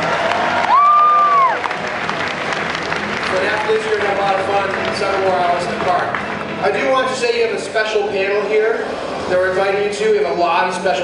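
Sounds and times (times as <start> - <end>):
audience applause and cheering: 0.0 - 7.4
speech: 4.3 - 11.0.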